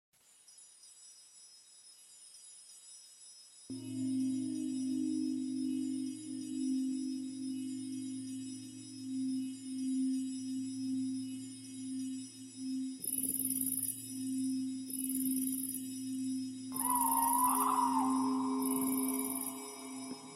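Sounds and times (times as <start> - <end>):
nature sounds: 0.2 - 20.3
ambient music: 3.7 - 20.3.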